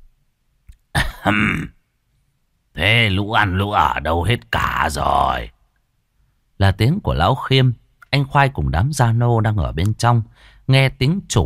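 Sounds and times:
man clearing his throat: 0:00.9 - 0:01.8
speech: 0:01.2 - 0:01.8, 0:02.8 - 0:05.6, 0:06.6 - 0:11.4.

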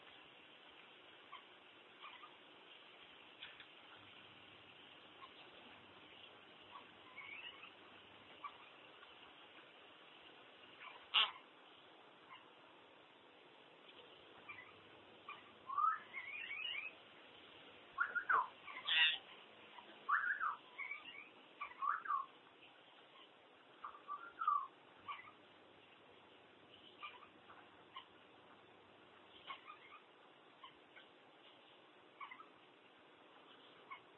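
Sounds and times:
Common hill myna whistles and harsh calls: 0:15.3 - 0:17.0, 0:18.0 - 0:19.2, 0:20.1 - 0:22.3, 0:23.8 - 0:25.4.

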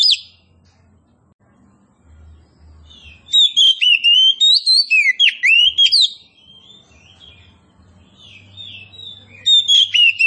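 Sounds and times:
Oriental magpie-robin of the form kacer poci singing loud varied whistles and trills: 0:00.0 - 0:00.4, 0:02.8 - 0:10.2.

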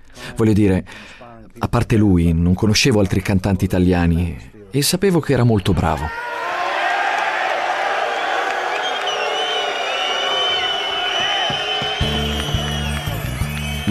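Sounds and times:
speech: 0:00.4 - 0:06.3
Turin concert audience chanting stadium-style chants at an Italian singer: 0:06.2 - 0:13.8.

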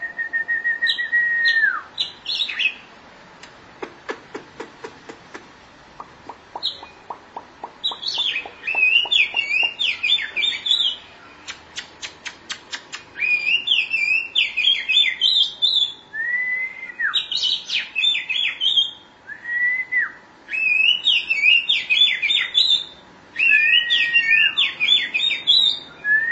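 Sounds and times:
Oriental magpie-robin song: 0:00.0 - 0:02.8, 0:07.8 - 0:11.6, 0:13.1 - 0:26.3.

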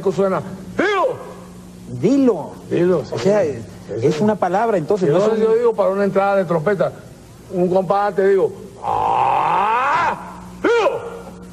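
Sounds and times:
speech: 0:00.0 - 0:01.2, 0:01.9 - 0:09.1
man's loud drawn-out shout: 0:00.8 - 0:01.5, 0:08.8 - 0:11.4.

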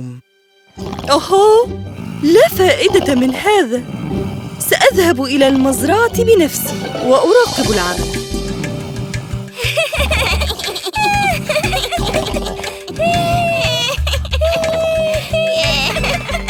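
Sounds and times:
speech: 0:00.8 - 0:08.2
children playing in a house giggling and squealing: 0:09.6 - 0:16.4
playful shrieks: 0:12.9 - 0:16.1.

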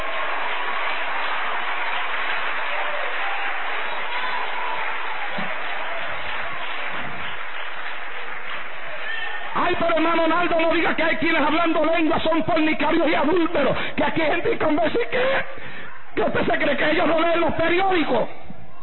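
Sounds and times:
church congregation applause during a Pentecostal sermon: 0:00.0 - 0:13.9
speech: 0:09.8 - 0:15.6, 0:16.2 - 0:18.4.

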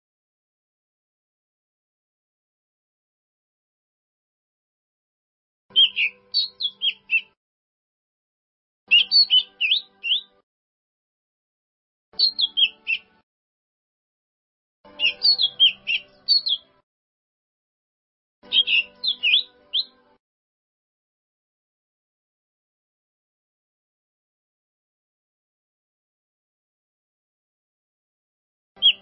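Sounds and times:
bird song: 0:05.7 - 0:07.4, 0:08.9 - 0:10.4, 0:12.2 - 0:13.2, 0:14.9 - 0:16.8, 0:18.4 - 0:20.2, 0:28.8 - 0:29.0.

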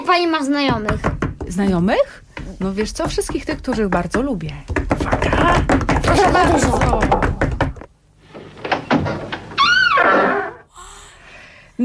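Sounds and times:
speech: 0:00.1 - 0:07.4
old door creaking open: 0:08.2 - 0:10.7.

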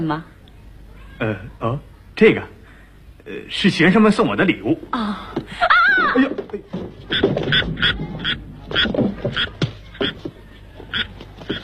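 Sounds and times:
speech: 0:00.0 - 0:00.4, 0:01.2 - 0:02.6, 0:03.2 - 0:10.2
laughter: 0:05.5 - 0:06.8
frog croaking: 0:07.1 - 0:10.2, 0:10.9 - 0:11.6.

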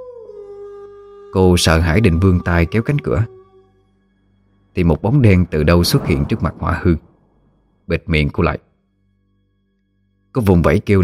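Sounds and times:
wolf howling: 0:00.0 - 0:03.7
speech: 0:01.3 - 0:03.4, 0:04.8 - 0:07.1, 0:07.9 - 0:08.7, 0:10.3 - 0:11.0.

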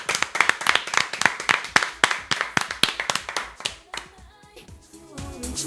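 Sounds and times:
audience applause: 0:00.0 - 0:04.0.

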